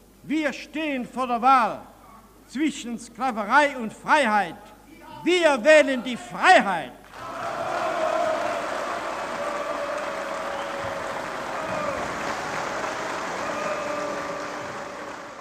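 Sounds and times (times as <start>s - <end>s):
speech: 0.2s - 1.9s, 2.5s - 7.0s
long applause in archival speech recording: 7.0s - 15.4s.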